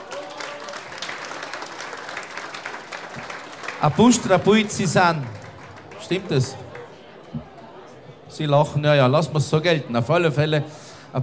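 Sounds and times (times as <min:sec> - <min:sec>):
applause: 0:00.0 - 0:07.6
speech: 0:03.8 - 0:05.4, 0:06.1 - 0:06.6, 0:08.4 - 0:11.2.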